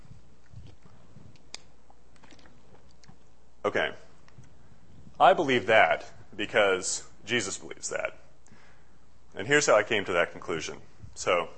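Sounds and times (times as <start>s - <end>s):
person sipping a drink: 0.4s - 3.4s
speech: 3.6s - 4.1s, 5.2s - 8.2s, 9.4s - 11.5s.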